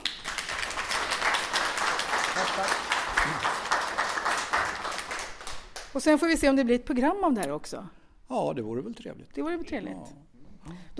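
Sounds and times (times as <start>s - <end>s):
audience applause: 0.0s - 5.8s
speech: 6.0s - 10.9s.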